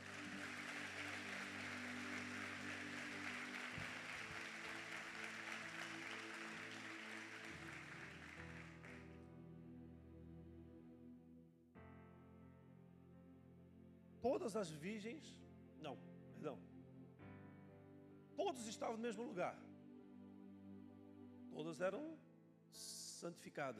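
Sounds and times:
audience applause: 0:00.0 - 0:09.2
speech: 0:14.2 - 0:16.7, 0:18.4 - 0:19.7, 0:21.6 - 0:23.7.

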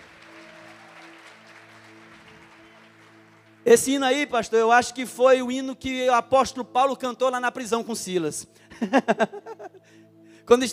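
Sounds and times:
audience applause: 0:00.0 - 0:03.7
speech: 0:03.6 - 0:10.7
laughter: 0:08.8 - 0:09.8.

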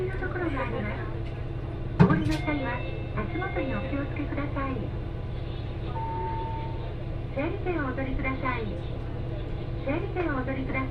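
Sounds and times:
Etsumi-Hoku line train low rumble: 0:00.0 - 0:10.9
brief steady tone: 0:06.0 - 0:06.8.

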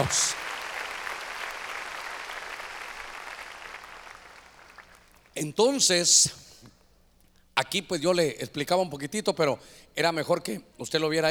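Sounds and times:
speech: 0:00.0 - 0:00.4, 0:05.4 - 0:06.5, 0:07.7 - 0:11.2
audience clapping loudly: 0:00.0 - 0:05.3.

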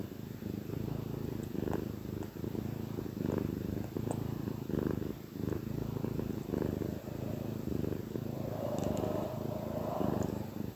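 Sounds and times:
cat purring: 0:00.0 - 0:10.7
faint soft ticks: 0:03.8 - 0:04.3.

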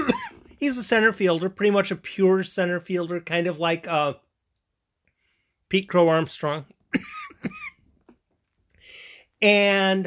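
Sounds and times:
person coughing: 0:00.0 - 0:00.5, 0:06.9 - 0:07.8
speech: 0:00.6 - 0:04.2, 0:05.7 - 0:07.6, 0:09.4 - 0:10.0.

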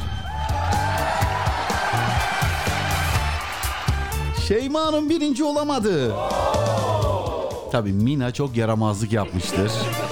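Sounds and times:
applause sound effect: 0:00.0 - 0:04.6
speech: 0:04.5 - 0:06.5, 0:07.7 - 0:10.1.

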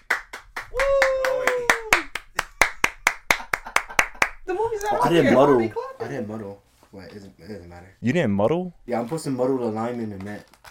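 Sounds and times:
single pair of hands clapping in a brisk rhythm: 0:00.0 - 0:05.0
speech: 0:04.5 - 0:10.6.

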